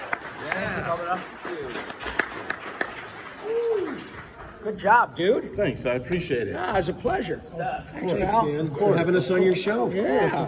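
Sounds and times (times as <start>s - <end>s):
crowd applauding: 0.0s - 5.0s
speech: 0.9s - 2.1s, 4.6s - 10.4s
people whooping and cheering: 3.3s - 4.2s.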